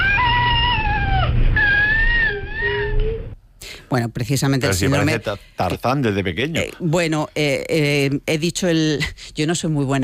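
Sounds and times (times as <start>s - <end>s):
high-pitched cat-like cry of cri du chat baby: 0.0s - 3.3s
speech: 3.9s - 10.0s.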